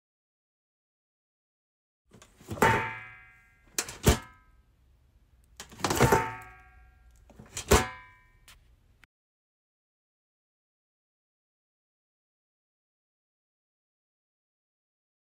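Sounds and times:
trash can: 0:02.2 - 0:03.2, 0:03.8 - 0:04.4, 0:05.6 - 0:06.6, 0:07.3 - 0:08.1.

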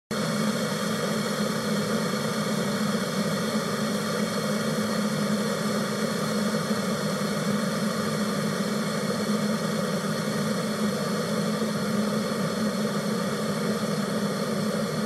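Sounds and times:
electric teapot: 0:00.2 - 0:15.0.

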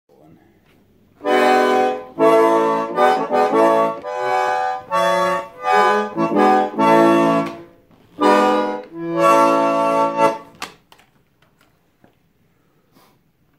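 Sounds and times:
concertina: 0:01.1 - 0:10.7.

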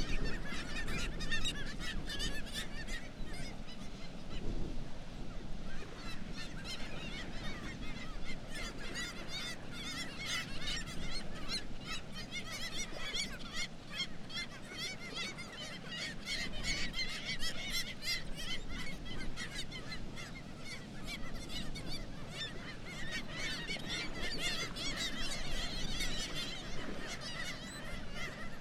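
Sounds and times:
black-legged kittiwake colony calling: 0:00.0 - 0:28.5.

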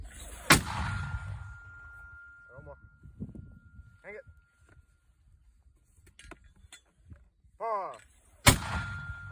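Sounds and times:
60 mm mortar firing: 0:00.4 - 0:01.4, 0:08.4 - 0:09.3.

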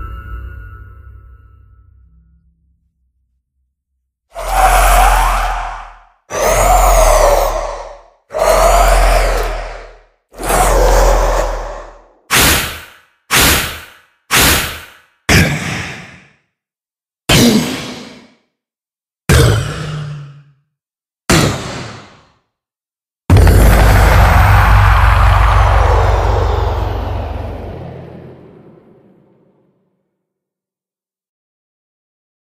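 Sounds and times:
Minecraft Wither game monster sound: 0:04.3 - 0:16.2, 0:19.3 - 0:20.5, 0:23.3 - 0:29.7.

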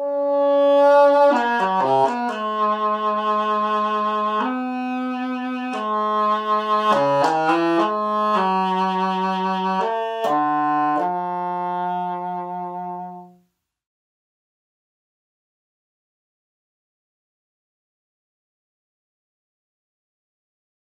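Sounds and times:
heckelphone: 0:00.0 - 0:13.4.

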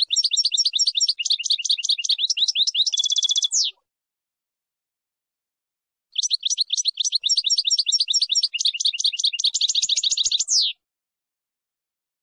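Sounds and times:
finch song: 0:00.0 - 0:03.8, 0:06.2 - 0:10.8.

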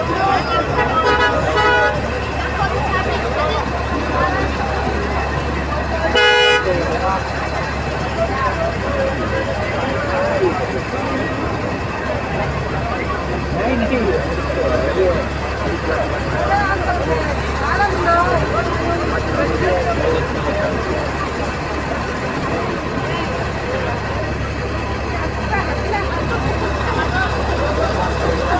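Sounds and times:
Arab crowd: 0:00.0 - 0:28.5.

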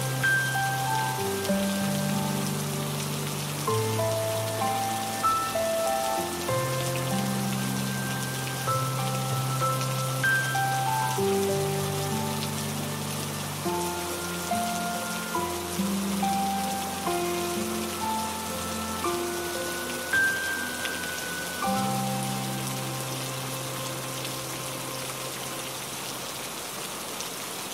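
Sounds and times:
piano: 0:00.0 - 0:26.6
rain: 0:00.0 - 0:27.7.

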